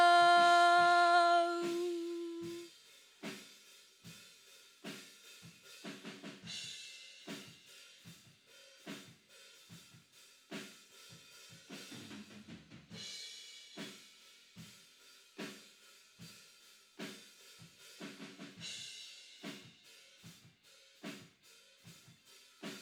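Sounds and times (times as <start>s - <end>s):
vocals: 0.0s - 2.7s.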